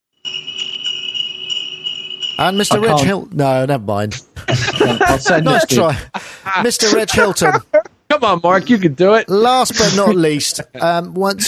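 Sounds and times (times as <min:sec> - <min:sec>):
sleigh bells jingling: 0:00.3 - 0:03.2, 0:04.5 - 0:07.6, 0:09.7 - 0:10.8
laughter: 0:02.4 - 0:03.2, 0:04.0 - 0:07.8, 0:09.4 - 0:11.4
speech: 0:02.4 - 0:11.4.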